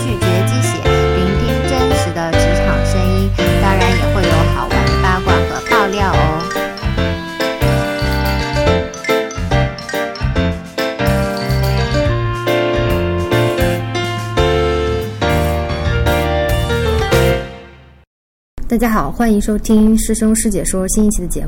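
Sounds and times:
podcast intro theme music: 0:00.0 - 0:18.0
speech: 0:18.8 - 0:21.4.

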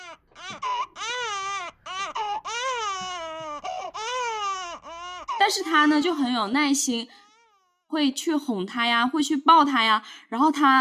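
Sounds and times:
baby crying: 0:00.0 - 0:05.9, 0:07.2 - 0:07.8
speech: 0:05.5 - 0:07.2, 0:07.9 - 0:10.7.

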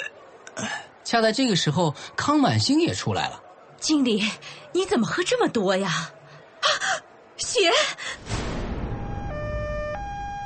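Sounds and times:
speech: 0:01.1 - 0:06.8, 0:07.4 - 0:08.3
ambulance siren: 0:08.8 - 0:10.4.

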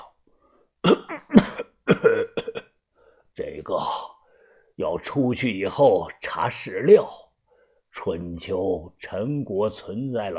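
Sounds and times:
person coughing violently: 0:00.8 - 0:02.7
speech: 0:01.1 - 0:01.7, 0:05.0 - 0:07.3, 0:08.0 - 0:10.3.

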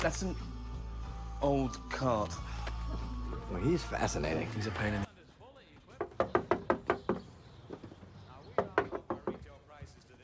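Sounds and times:
speech: 0:00.0 - 0:00.5, 0:01.4 - 0:05.1
knocking on a door: 0:06.0 - 0:08.0, 0:08.6 - 0:09.5.

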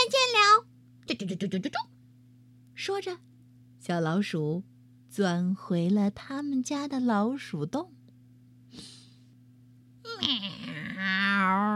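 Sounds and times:
speech: 0:01.2 - 0:01.9, 0:02.8 - 0:08.0, 0:08.7 - 0:09.0, 0:10.2 - 0:11.7
breathy puff: 0:08.7 - 0:09.3
voice imitating a cat's meow: 0:10.1 - 0:11.7.

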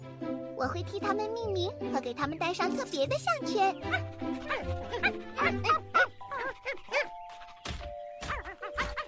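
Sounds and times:
speech: 0:00.6 - 0:05.8
small dogs barking: 0:03.8 - 0:07.6, 0:08.2 - 0:09.0.

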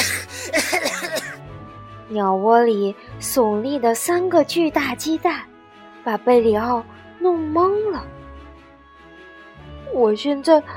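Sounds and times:
voice imitating choking coughs from dust: 0:00.0 - 0:01.4
speech: 0:02.1 - 0:08.2, 0:09.9 - 0:10.7.

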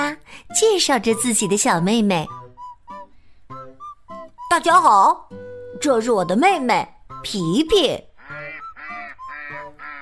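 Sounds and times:
speech: 0:00.4 - 0:02.4, 0:04.5 - 0:08.1
ducks quacking: 0:08.2 - 0:10.0.

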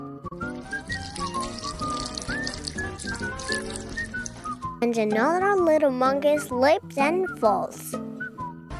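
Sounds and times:
oil spilling: 0:00.4 - 0:04.8
speech: 0:04.8 - 0:08.0.

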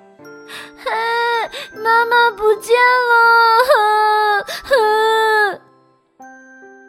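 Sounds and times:
speech: 0:00.5 - 0:05.6
child crying loudly: 0:00.7 - 0:05.6.

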